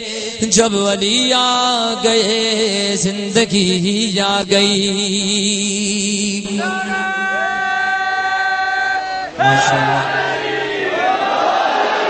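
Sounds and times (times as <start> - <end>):
speech: 0.0 - 7.6, 9.4 - 10.5
crowd of brothers chanting a slogan: 7.3 - 12.0.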